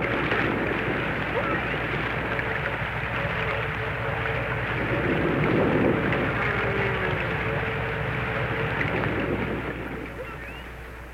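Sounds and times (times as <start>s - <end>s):
faint wavering tonal hums: 0.0s - 11.1s
unidentified deep ocean rumble from the Pacific: 0.0s - 11.1s.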